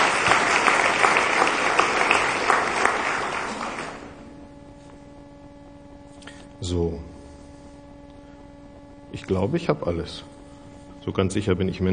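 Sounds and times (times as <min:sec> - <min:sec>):
crowd applauding steadily: 0:00.0 - 0:04.3
speech: 0:06.7 - 0:07.1, 0:09.2 - 0:10.3, 0:11.1 - 0:11.9.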